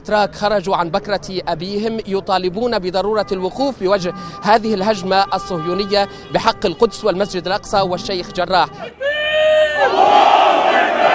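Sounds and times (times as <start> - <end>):
speech: 0.0 - 10.3
protesters chanting and shouting outside the Israeli consulate in Istanbul: 8.7 - 11.1.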